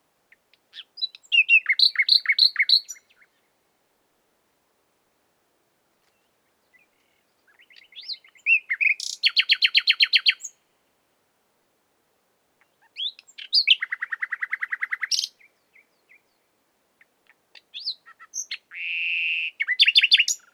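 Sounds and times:
common nightingale Luscinia megarhynchos singing: 0.3 - 3.5, 6.0 - 10.6, 12.6 - 20.5.

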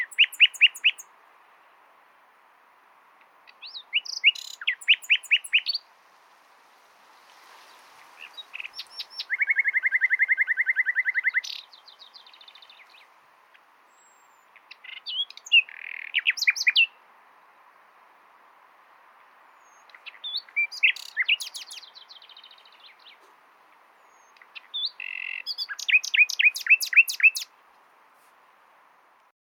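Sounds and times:
Common nightingale singing: 0.0 - 1.1, 3.2 - 5.9, 8.1 - 17.0, 19.4 - 27.6.

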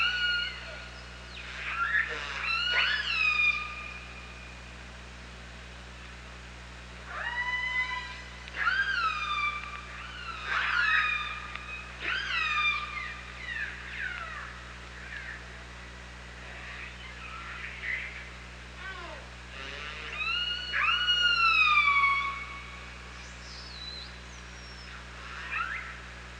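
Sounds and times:
killer whale pulsed calls: 0.0 - 4.4, 7.1 - 15.5, 16.4 - 23.0, 24.6 - 26.1
constant low hum: 0.0 - 26.3.

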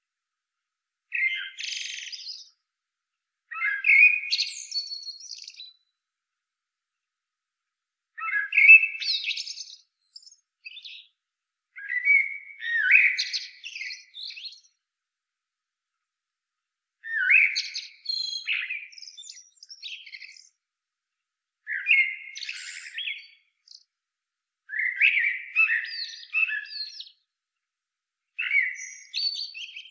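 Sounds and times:
common blackbird warbled song: 1.1 - 2.6, 3.5 - 5.9, 8.2 - 11.2, 11.8 - 14.8, 17.0 - 20.6, 21.7 - 23.9, 24.7 - 27.3, 28.4 - 29.8.

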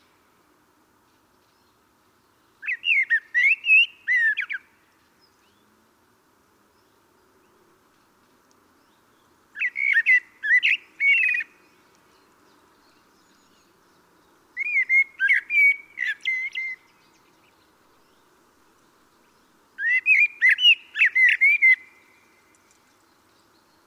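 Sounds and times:
common blackbird singing: 2.6 - 5.7, 8.8 - 18.3, 19.2 - 23.8.

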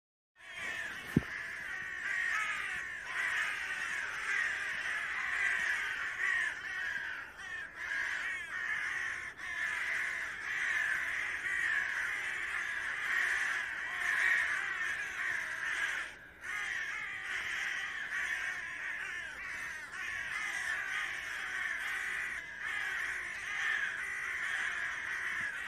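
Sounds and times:
Carrion crow giving hoarse grating caws: 0.4 - 25.6.

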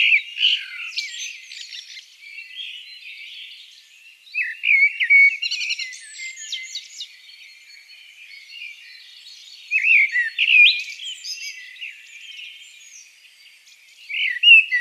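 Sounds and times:
Common blackbird song: 0.0 - 14.7.

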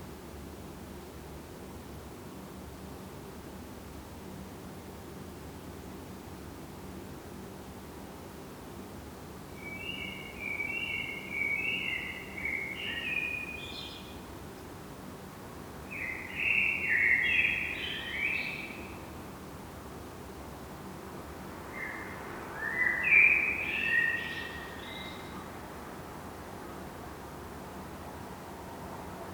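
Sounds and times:
Eurasian blackbird song: 9.6 - 14.3, 15.9 - 19.1, 21.7 - 25.5.

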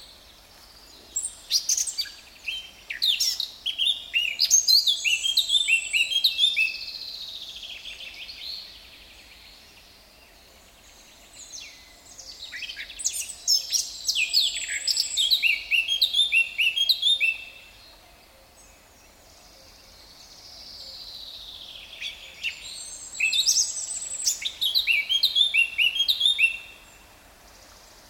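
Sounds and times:
Sylvia atricapilla Eurasian blackcap singing: 1.2 - 6.8, 12.6 - 17.5, 21.9 - 26.8.

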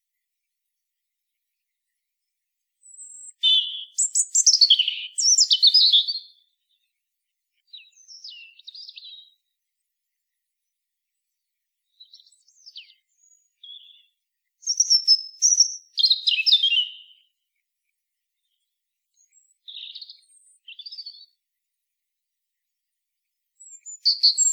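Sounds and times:
European robin song: 2.8 - 6.9, 7.6 - 9.6, 11.8 - 17.4, 18.4 - 21.4, 23.6 - 24.5.

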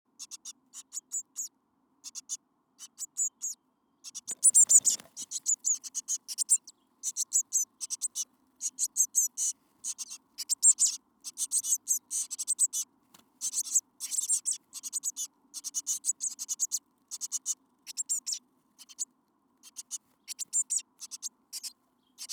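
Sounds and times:
Eurasian blue tit Cyanistes caeruleus calling: 0.2 - 22.3.

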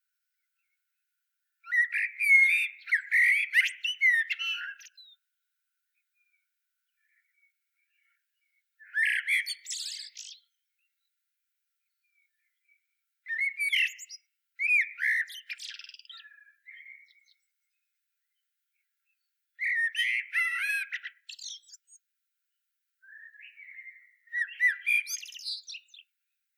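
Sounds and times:
common blackbird Turdus merula singing: 1.6 - 5.2, 8.8 - 10.6, 13.3 - 17.5, 19.6 - 22.0, 23.0 - 26.1.

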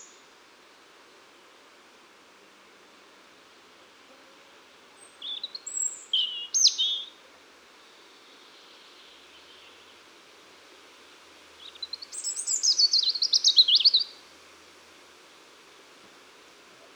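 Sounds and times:
Erithacus rubecula singing: 5.2 - 7.1, 11.6 - 14.1.

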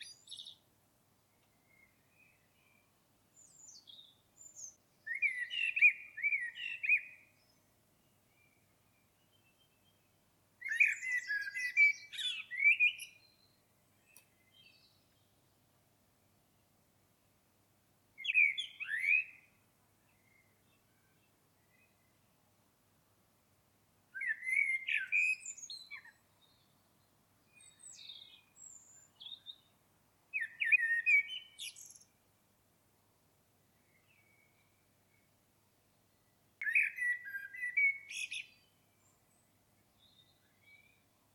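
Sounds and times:
common blackbird singing: 0.0 - 0.6, 3.4 - 7.6, 8.3 - 15.4, 18.2 - 19.5, 24.1 - 29.7, 30.4 - 32.2, 36.6 - 41.0.

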